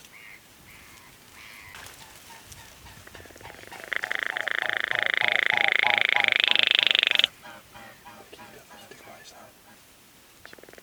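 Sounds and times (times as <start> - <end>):
Baillon's crake singing: 2.9 - 9.8.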